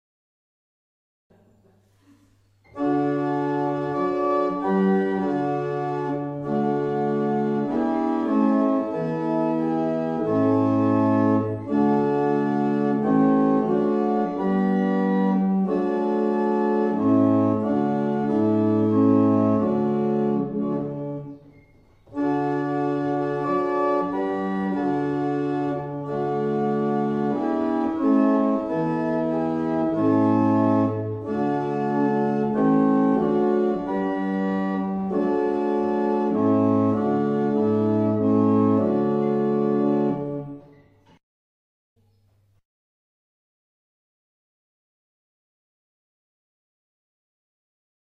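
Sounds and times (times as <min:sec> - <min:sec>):
barrel organ playing a double chant: 0:02.6 - 0:41.0.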